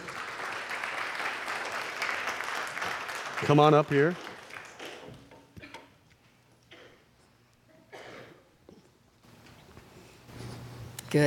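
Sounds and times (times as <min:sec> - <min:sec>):
audience applause welcoming a speaker to the stage: 0:00.0 - 0:05.3
speech: 0:03.4 - 0:04.2.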